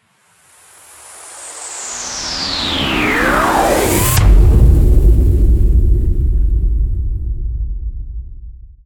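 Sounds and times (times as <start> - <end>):
transition sound: 1.8 - 7.4.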